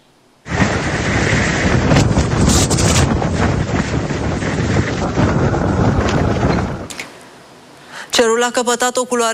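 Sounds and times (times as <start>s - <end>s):
strong wind of a sandstorm buffeting the microphone: 0.4s - 7.0s
speech: 8.4s - 9.3s.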